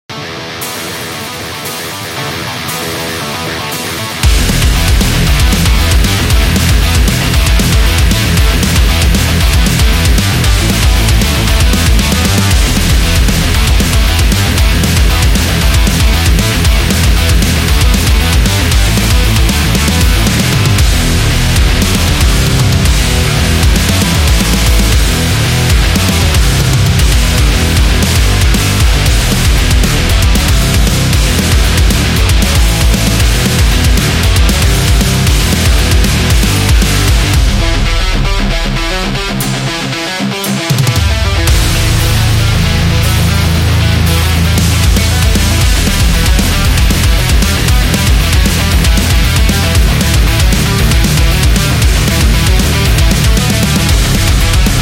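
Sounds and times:
speed heavy metal music: 0.0s - 54.8s.

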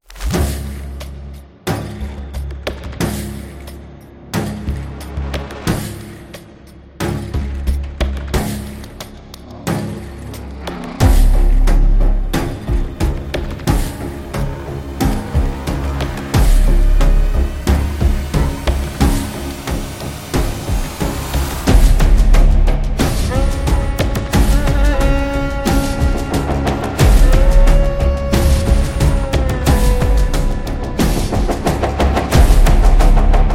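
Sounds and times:
ritual horror trailer music: 0.1s - 33.5s.

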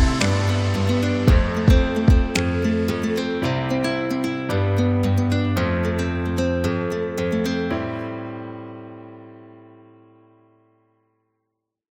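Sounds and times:
positive indie folk music: 0.0s - 9.0s.

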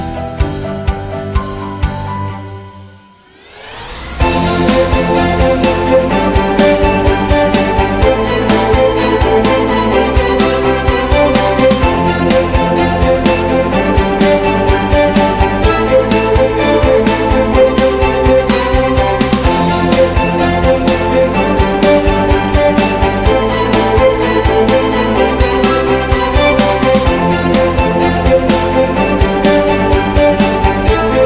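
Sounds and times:
cinematic piano and strings: 0.0s - 31.2s.

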